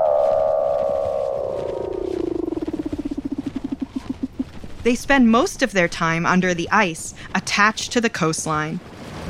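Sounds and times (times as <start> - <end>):
Weddell seal trills, chirps, whistles and buzzes: 0.0 - 4.5
speech: 4.8 - 9.0.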